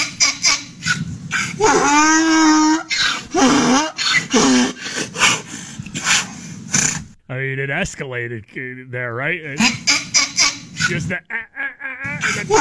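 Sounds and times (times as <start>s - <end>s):
donkey mating call braying: 0.0s - 7.2s, 9.3s - 12.6s
speech: 1.6s - 2.4s, 7.6s - 10.3s, 10.9s - 11.6s, 12.2s - 12.6s
laughter: 10.8s - 12.6s.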